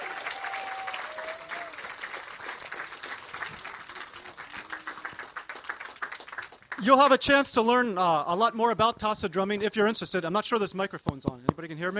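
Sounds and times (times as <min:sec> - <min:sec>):
audience applause: 0:00.0 - 0:06.8
speech: 0:06.8 - 0:11.9.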